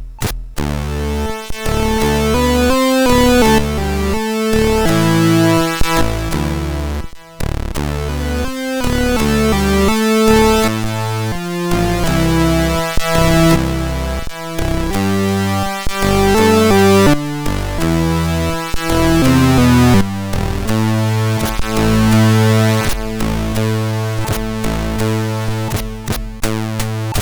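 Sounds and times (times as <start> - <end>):
MOS6581R4 SID chip synth: 0.6 - 27.1.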